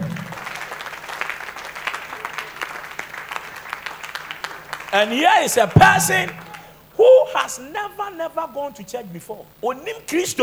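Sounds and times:
audience applause: 0.0 - 6.8
speech: 4.9 - 6.4, 7.3 - 10.4.

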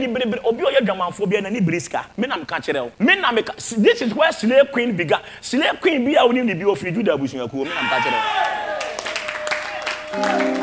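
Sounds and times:
speech: 0.0 - 8.6, 10.1 - 10.6
congregation clapping at a prayer service: 8.4 - 10.6
sustained tone: 10.2 - 10.6.

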